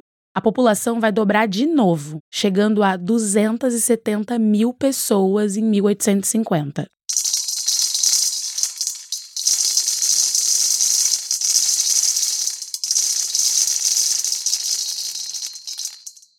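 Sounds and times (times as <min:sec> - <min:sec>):
speech: 0:00.4 - 0:07.0
coffee beans pouring and rattling into a bowl: 0:07.1 - 0:16.3.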